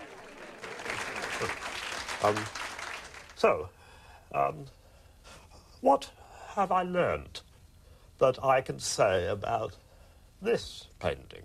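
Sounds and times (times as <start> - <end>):
audience clapping: 0.0 - 3.7
speech: 1.4 - 1.6, 2.2 - 2.6, 3.4 - 4.8, 5.8 - 7.4, 8.2 - 9.8, 10.4 - 11.4.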